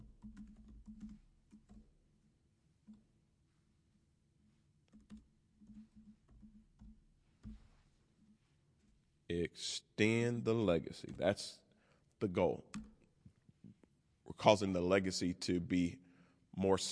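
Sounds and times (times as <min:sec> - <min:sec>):
typing on a computer keyboard: 0:00.0 - 0:02.0, 0:02.8 - 0:03.1, 0:04.8 - 0:07.8, 0:12.7 - 0:13.1
speech: 0:09.6 - 0:11.6, 0:12.2 - 0:12.9, 0:14.4 - 0:16.0, 0:16.6 - 0:16.9.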